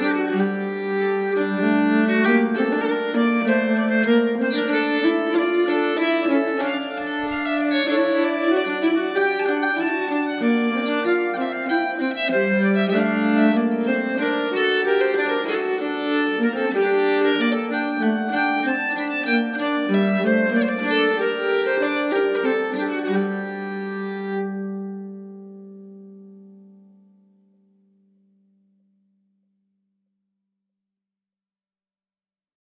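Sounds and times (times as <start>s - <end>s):
nyckelharpa playing a polska: 0.0s - 25.0s.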